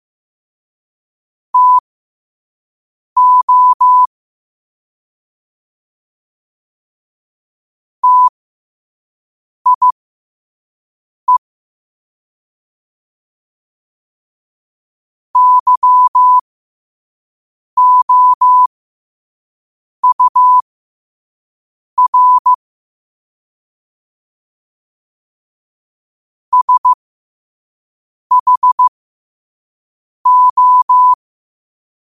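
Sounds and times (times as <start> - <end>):
morse code at 5 wpm: 1.6 - 1.8, 3.2 - 4.1, 8.0 - 8.3, 9.7 - 9.9, 15.4 - 16.4, 17.8 - 18.7, 20.0 - 20.6, 22.0 - 22.6, 26.5 - 27.0, 28.3 - 28.9, 30.3 - 31.2.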